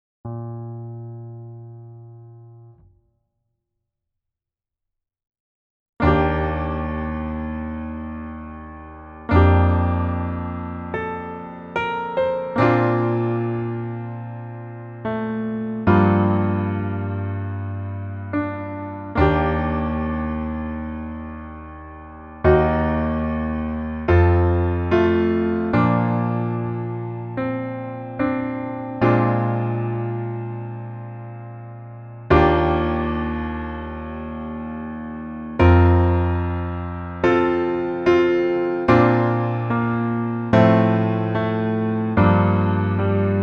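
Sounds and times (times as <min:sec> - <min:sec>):
piano music: 0:00.3 - 0:02.9, 0:06.0 - 0:43.4.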